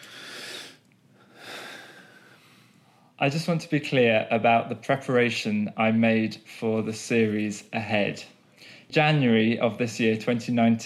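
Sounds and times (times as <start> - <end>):
soft airy breath being taken: 0.0 - 3.2, 8.4 - 8.9
speech: 3.2 - 10.8.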